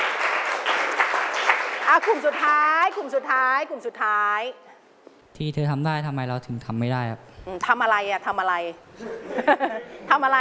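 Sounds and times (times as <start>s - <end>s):
audience clapping: 0.0s - 3.0s
speech: 1.9s - 4.6s, 5.4s - 10.3s
laughter: 9.0s - 10.1s.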